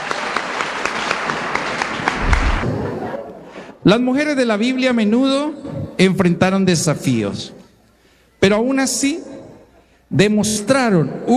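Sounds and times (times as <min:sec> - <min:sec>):
audience applause: 0:00.0 - 0:03.3
speech: 0:03.9 - 0:07.6, 0:08.4 - 0:09.4, 0:10.1 - 0:11.3.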